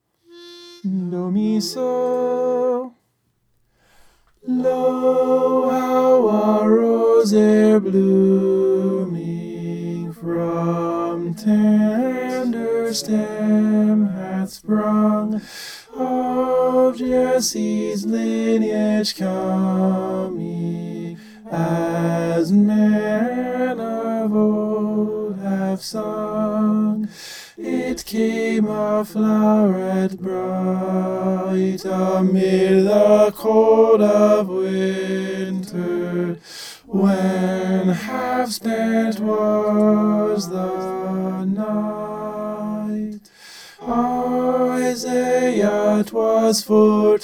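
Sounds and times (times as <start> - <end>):
tenor singing: 0.2 - 3.0, 4.4 - 47.2.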